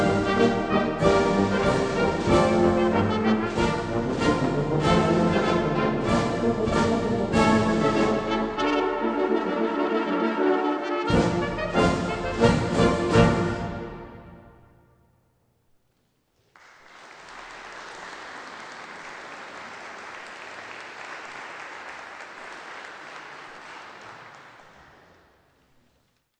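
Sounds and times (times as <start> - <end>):
Danish march music: 0.0 - 14.8.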